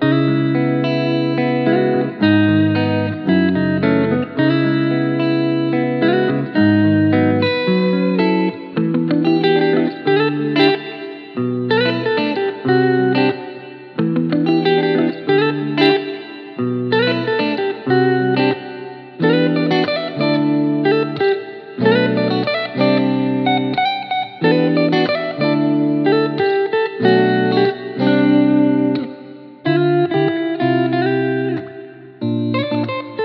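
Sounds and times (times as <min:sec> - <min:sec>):
lush guitars: 0:00.0 - 0:33.2.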